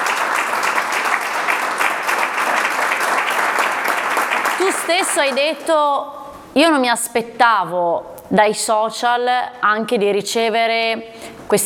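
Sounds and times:
audience applause: 0:00.0 - 0:05.6
speech: 0:04.8 - 0:11.6.

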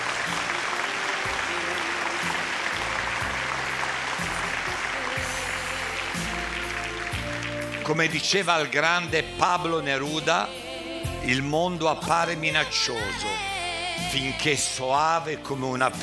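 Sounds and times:
large theatre audience applause: 0:00.0 - 0:09.1
speech: 0:07.9 - 0:10.6, 0:11.2 - 0:13.5, 0:14.1 - 0:16.0.

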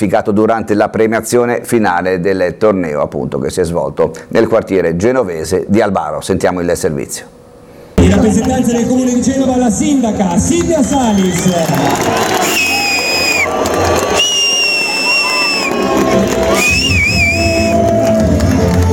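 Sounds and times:
speech: 0:00.0 - 0:07.4, 0:08.0 - 0:12.6
crowd whistling in disapproval: 0:09.3 - 0:18.8.

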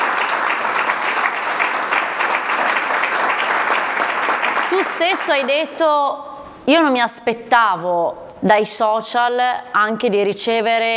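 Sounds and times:
applause for a guest: 0:00.0 - 0:05.8
speech: 0:05.0 - 0:10.9.

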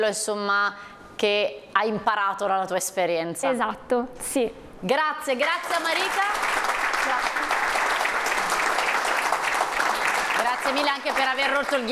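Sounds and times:
speech: 0:00.0 - 0:06.5, 0:07.1 - 0:07.5, 0:10.6 - 0:11.9
audience applause: 0:05.6 - 0:11.9.

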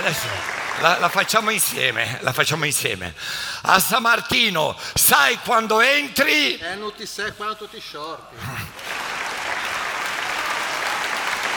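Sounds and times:
audience applause: 0:00.0 - 0:01.7, 0:08.7 - 0:11.5
speech: 0:00.0 - 0:08.9.

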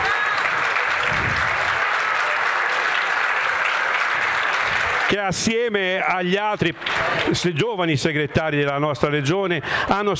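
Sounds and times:
audience applause: 0:00.0 - 0:07.6
speech: 0:05.1 - 0:10.1.

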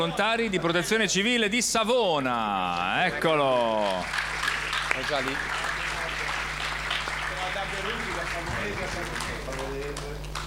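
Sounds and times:
speech: 0:00.0 - 0:04.3, 0:05.0 - 0:05.6, 0:08.3 - 0:10.3
audience applause: 0:03.1 - 0:10.4.

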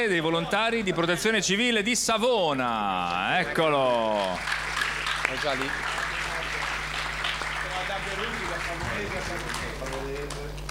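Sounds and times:
speech: 0:00.0 - 0:04.6, 0:05.3 - 0:05.9
audience applause: 0:03.5 - 0:10.6.

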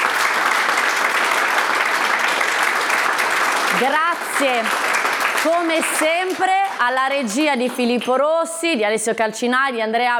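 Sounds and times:
audience applause: 0:00.0 - 0:07.8
speech: 0:03.8 - 0:10.1.

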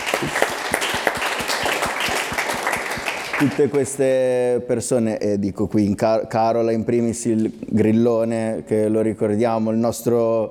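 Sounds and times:
audience applause: 0:00.0 - 0:03.9
speech: 0:00.2 - 0:00.5, 0:03.4 - 0:10.4.

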